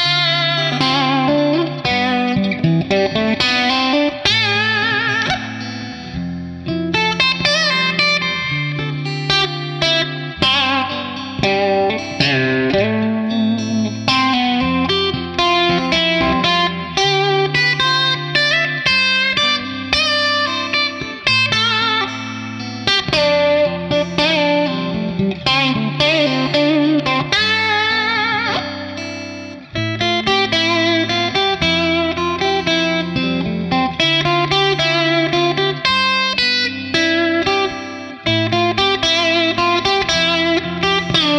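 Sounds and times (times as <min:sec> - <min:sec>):
Dumble Steel String Singer amplifier with TS808: 0:00.0 - 0:41.3.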